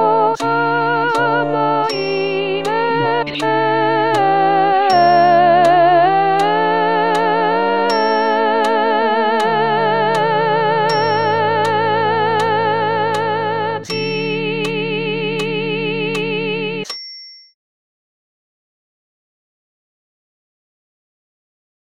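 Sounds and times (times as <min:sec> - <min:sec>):
soprano singing: 0:00.0 - 0:16.8.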